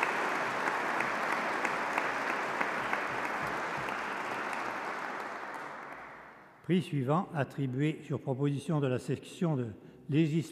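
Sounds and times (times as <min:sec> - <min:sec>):
audience applause: 0:00.0 - 0:06.5
speech: 0:06.7 - 0:10.5.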